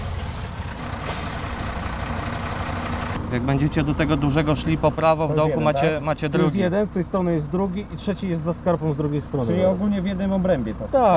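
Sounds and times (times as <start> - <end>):
fire engine diesel rumble: 0.0 - 11.1
fire engine air brakes hissing: 0.2 - 2.1
speech: 3.3 - 11.1.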